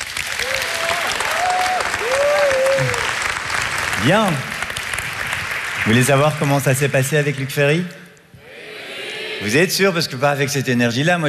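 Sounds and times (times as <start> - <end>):
audience applause: 0.0 - 6.7
speech: 4.0 - 4.5, 5.8 - 8.0, 9.4 - 11.2.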